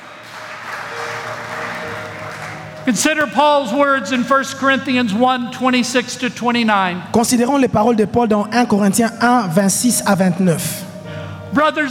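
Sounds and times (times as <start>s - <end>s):
church congregation applauding during a bilingual English and French service: 0.0s - 5.2s
speech: 2.9s - 10.9s, 11.5s - 11.8s.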